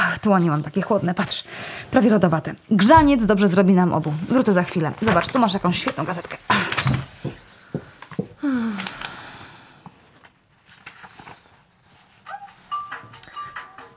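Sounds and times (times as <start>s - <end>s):
speech: 0.2s - 7.0s
mobile phone ringing: 12.5s - 13.9s.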